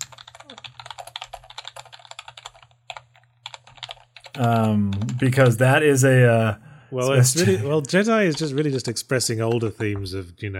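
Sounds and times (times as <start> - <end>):
rapid typing on a computer keyboard to write a note: 0.0 - 5.8, 8.0 - 10.2
speech: 4.4 - 10.5.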